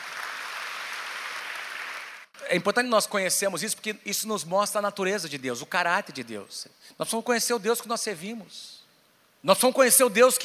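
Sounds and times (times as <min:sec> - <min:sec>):
audience applause: 0:00.0 - 0:02.3
speech: 0:02.5 - 0:08.8, 0:09.4 - 0:10.4.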